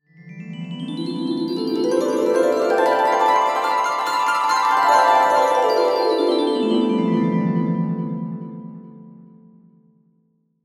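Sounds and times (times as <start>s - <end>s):
cartoon dreamy harp glissando: 0.4s - 8.8s.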